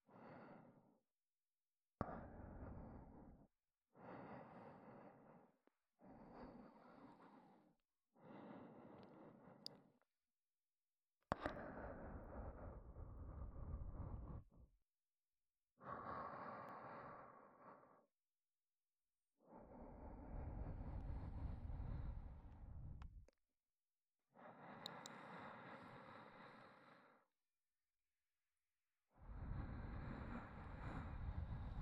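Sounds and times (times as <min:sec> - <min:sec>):
ASMR breathy sighs: 0:00.0 - 0:01.0, 0:02.0 - 0:10.0, 0:11.3 - 0:14.7, 0:15.8 - 0:18.1, 0:19.4 - 0:23.0, 0:24.3 - 0:27.4, 0:29.2 - 0:31.8.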